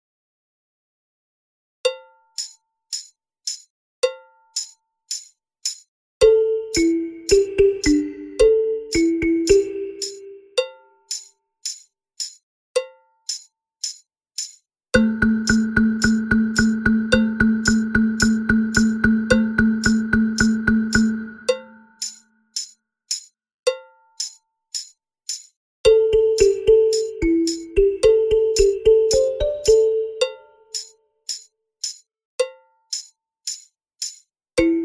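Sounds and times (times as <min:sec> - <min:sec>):
balafon: 0:06.2 - 0:10.9, 0:15.0 - 0:22.0, 0:25.8 - 0:30.7, 0:34.6 - 0:34.8.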